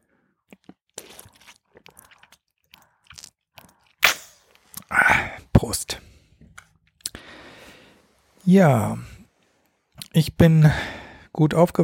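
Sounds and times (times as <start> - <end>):
person drinking a sip of water from a bottle: 0.4 - 5.4
speech: 5.7 - 6.0, 8.5 - 9.1, 10.2 - 11.8.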